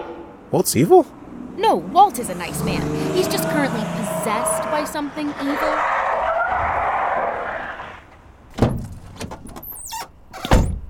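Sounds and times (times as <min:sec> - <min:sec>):
car pulling up with screeching tires: 0:00.0 - 0:08.3
speech: 0:00.5 - 0:06.0.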